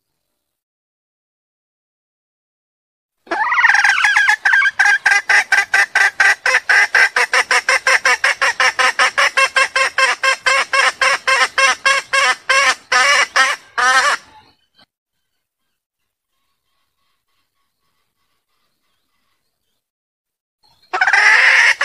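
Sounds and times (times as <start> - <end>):
junglefowl mating call: 3.3 - 14.5, 20.9 - 21.8.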